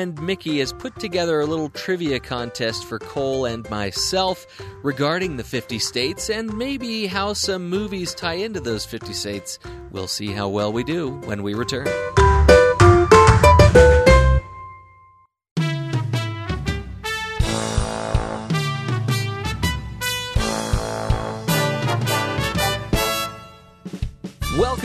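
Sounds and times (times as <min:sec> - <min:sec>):
speech: 0:00.0 - 0:12.2
trivia contest theme music: 0:00.0 - 0:14.7, 0:15.6 - 0:24.8.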